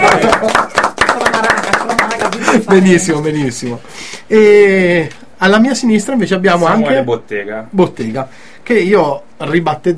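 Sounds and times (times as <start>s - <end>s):
audience applause: 0.0s - 3.0s
speech: 2.7s - 9.9s.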